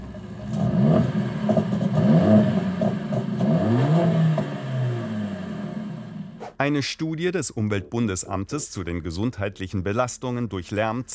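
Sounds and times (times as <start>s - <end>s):
Mercedes-AMG high-performance engine revving: 0.0s - 6.4s
speech: 6.6s - 11.1s.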